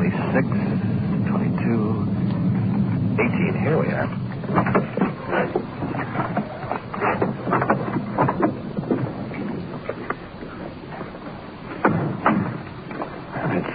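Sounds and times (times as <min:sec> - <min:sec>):
wind blowing outdoors at night: 0:00.0 - 0:13.7.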